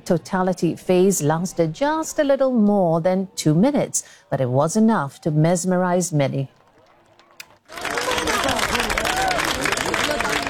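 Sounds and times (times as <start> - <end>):
speech: 0.0 - 6.6
crowd in Spain applauding solar eclipse totality: 6.6 - 10.4.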